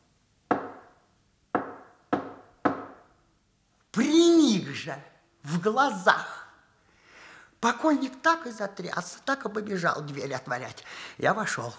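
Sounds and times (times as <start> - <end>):
knocking signal taps on a window pane: 0.5 - 1.0, 1.6 - 3.1
speech: 4.0 - 6.4, 7.6 - 11.7.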